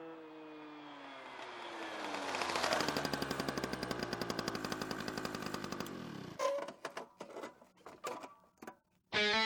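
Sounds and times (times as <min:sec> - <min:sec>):
sputtering Vespa scooter engine: 0:00.0 - 0:08.8.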